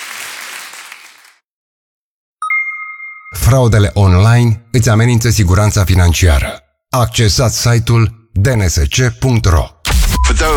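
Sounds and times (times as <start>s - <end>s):
applause: 0.0s - 1.5s
speech: 3.3s - 9.7s.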